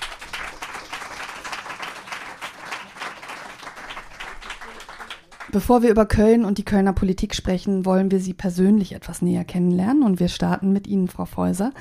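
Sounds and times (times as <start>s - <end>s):
audience applause: 0.0s - 5.6s
speech: 5.5s - 11.7s.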